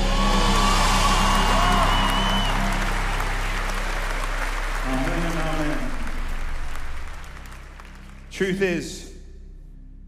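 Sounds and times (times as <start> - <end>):
crowd whoops and shouts: 0.0 - 5.8
crowd applause: 0.0 - 8.9
speech: 8.4 - 9.1.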